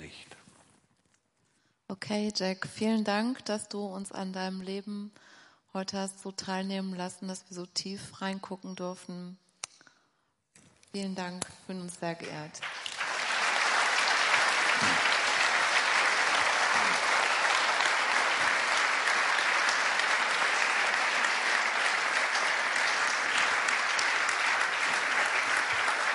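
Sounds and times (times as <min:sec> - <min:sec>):
speech: 0:01.9 - 0:09.4, 0:10.9 - 0:12.8
audience applause: 0:12.6 - 0:26.1.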